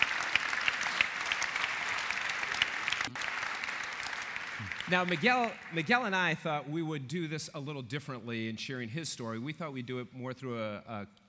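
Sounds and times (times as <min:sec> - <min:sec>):
audience applause welcoming a guest speaker from an engineering department: 0:00.0 - 0:06.0
speech: 0:04.9 - 0:11.2.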